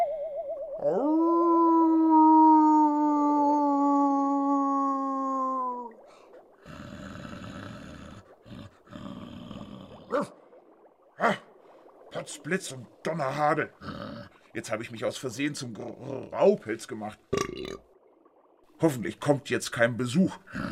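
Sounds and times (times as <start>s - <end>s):
wolf howling: 0.0s - 5.4s
speech: 12.3s - 13.9s, 14.6s - 17.9s, 18.8s - 20.7s.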